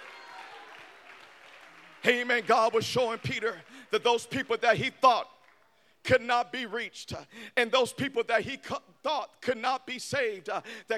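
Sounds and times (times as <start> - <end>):
audience clapping: 0.0 - 4.8, 5.4 - 5.8
speech: 2.0 - 5.4, 6.0 - 10.9.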